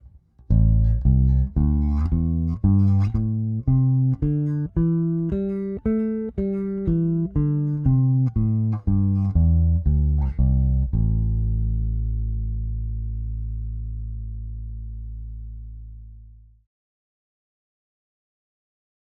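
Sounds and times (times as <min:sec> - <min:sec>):
bass guitar with Aguilar Super Double active pickups: 0:00.0 - 0:16.6.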